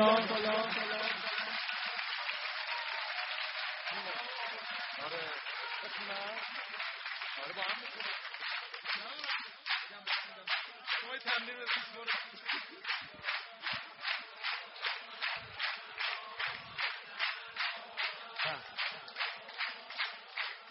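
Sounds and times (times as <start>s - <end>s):
crowd clapping in rhythm at a devotional gathering honoring Imam Hasan: 0.0s - 20.6s.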